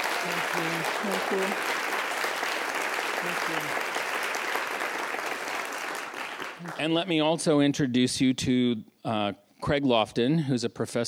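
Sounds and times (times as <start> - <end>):
audience applause: 0.0 - 7.2
speech: 0.2 - 1.9, 3.2 - 4.0, 6.6 - 11.0.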